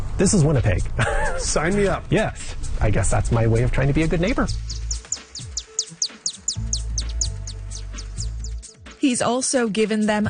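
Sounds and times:
speech: 0.2s - 4.8s, 9.1s - 10.2s
chimney swifts chirping: 4.1s - 8.8s.

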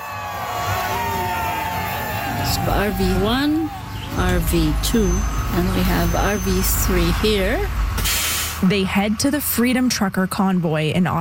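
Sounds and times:
whoops and shouts: 0.0s - 4.0s
crowd of supporters cheering a convoy of RVs setting off from Victoria BC: 0.0s - 7.9s
speech: 2.6s - 3.6s, 4.2s - 11.1s.

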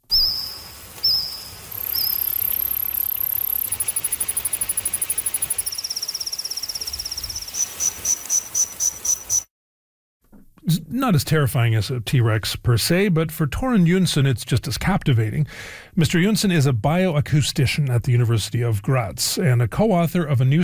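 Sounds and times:
recreated songs of Jurassic-era insects: 0.0s - 9.5s
speech: 11.0s - 20.6s.

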